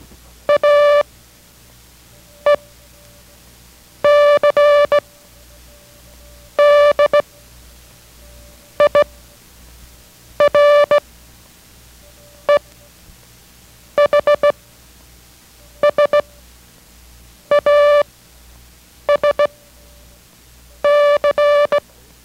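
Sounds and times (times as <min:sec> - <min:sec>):
Morse code characters as a steady mid-pitched beeping tone: 0:00.5 - 0:01.0, 0:02.3 - 0:03.1, 0:04.0 - 0:07.3, 0:08.2 - 0:09.2, 0:10.4 - 0:11.0, 0:14.0 - 0:14.6, 0:15.8 - 0:16.4, 0:17.5 - 0:18.0, 0:19.1 - 0:20.0, 0:20.8 - 0:21.8.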